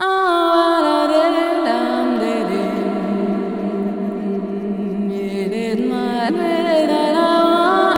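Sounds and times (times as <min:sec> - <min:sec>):
funky ethno vocals: 0:00.0 - 0:07.9.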